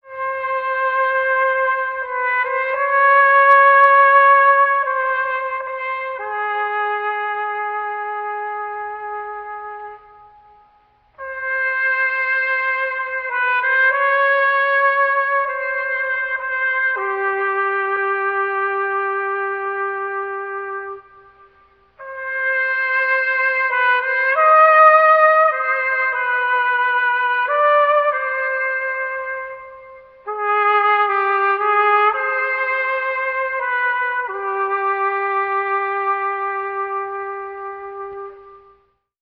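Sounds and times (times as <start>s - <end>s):
sad horns: 0.0s - 39.0s.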